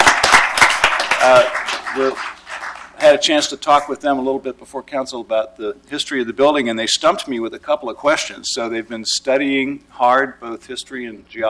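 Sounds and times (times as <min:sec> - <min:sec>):
applause for visiting third-grade students at a council meeting: 0:00.0 - 0:03.2
speech: 0:01.2 - 0:02.4, 0:03.0 - 0:11.4.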